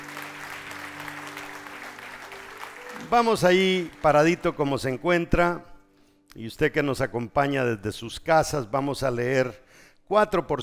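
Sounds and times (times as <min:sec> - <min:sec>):
loud audience applause: 0:00.0 - 0:04.5
speech: 0:03.1 - 0:05.7, 0:06.3 - 0:10.6.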